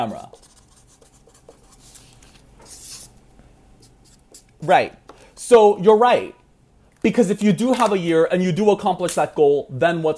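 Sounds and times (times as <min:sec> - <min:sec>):
speech: 0:00.0 - 0:00.5, 0:04.6 - 0:06.4, 0:07.0 - 0:10.1
pen scratching across paper while drawing: 0:00.0 - 0:03.1.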